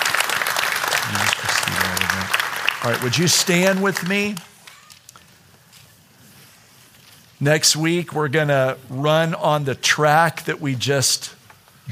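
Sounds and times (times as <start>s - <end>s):
audience applause: 0.0s - 5.0s
speech: 2.8s - 4.5s, 7.4s - 11.9s.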